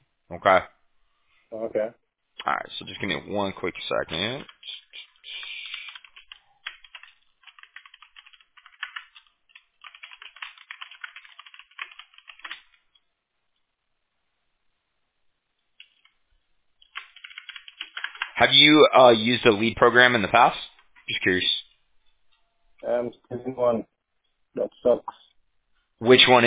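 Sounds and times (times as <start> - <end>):
speech: 0.3 - 0.8, 1.5 - 4.8, 18.4 - 21.6, 22.8 - 23.9, 24.5 - 25.2, 26.0 - 26.4
computer keyboard typing while copying and pasting text: 4.1 - 12.8, 15.8 - 16.2, 16.8 - 18.4.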